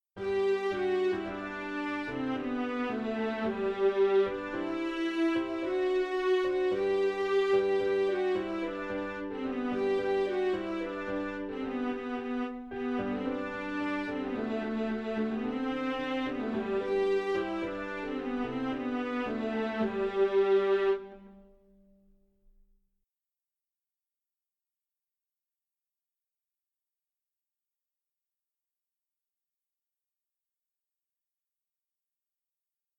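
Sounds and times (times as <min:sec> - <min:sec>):
strings: 0:00.2 - 0:22.0.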